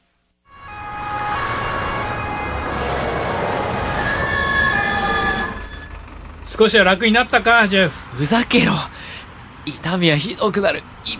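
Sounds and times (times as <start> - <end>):
ambulance siren: 0.5 - 8.1
speech: 6.5 - 9.0, 9.6 - 11.1.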